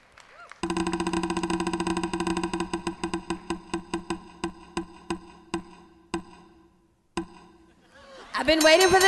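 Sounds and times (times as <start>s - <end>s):
spinning wheel ticking: 0.6s - 7.6s
speech: 8.4s - 9.0s.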